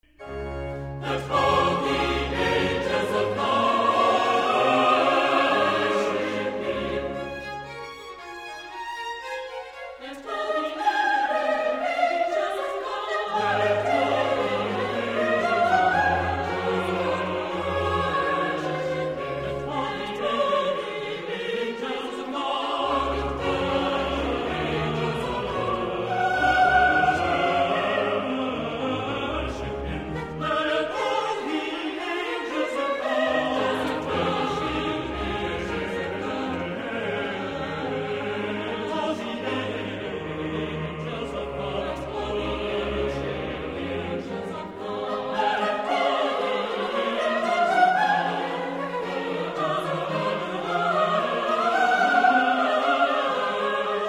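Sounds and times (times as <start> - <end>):
choir singing: 0.0 - 54.0.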